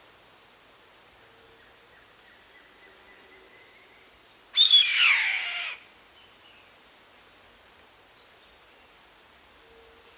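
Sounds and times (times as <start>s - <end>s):
bird screeching: 4.6s - 5.8s.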